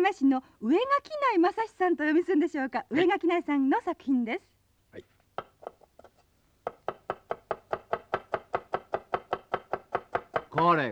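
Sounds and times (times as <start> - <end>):
speech: 0.0 - 5.5, 10.6 - 10.9
knife chopping food on a board: 5.4 - 10.9.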